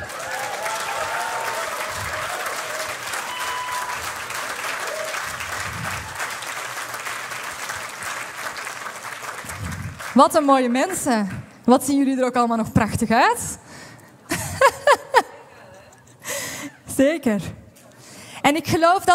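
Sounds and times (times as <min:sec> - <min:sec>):
scattered whistles or cheers: 0:00.0 - 0:06.4
crowd applause: 0:00.0 - 0:10.8
speech: 0:10.2 - 0:13.6, 0:17.0 - 0:17.6, 0:18.5 - 0:19.1
laughter: 0:14.3 - 0:16.2.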